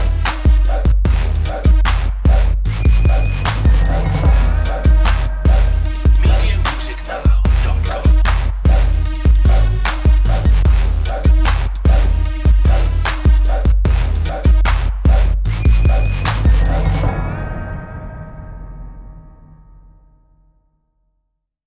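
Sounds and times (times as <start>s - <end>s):
hip hop music: 0.0s - 17.2s.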